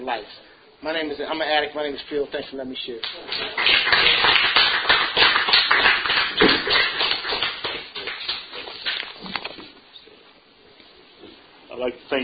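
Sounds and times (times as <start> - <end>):
speech: 0.1 - 4.6, 11.8 - 12.2
audience applause: 3.1 - 9.0.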